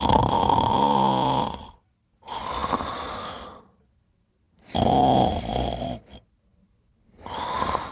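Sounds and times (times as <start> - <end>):
person sleeping: 0.0 - 3.7, 4.6 - 6.2, 7.1 - 7.9.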